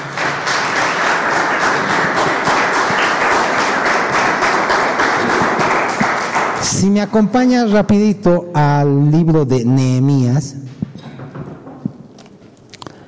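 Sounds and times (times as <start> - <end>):
audience applauding: 0.0 - 7.2
speech: 6.8 - 10.8.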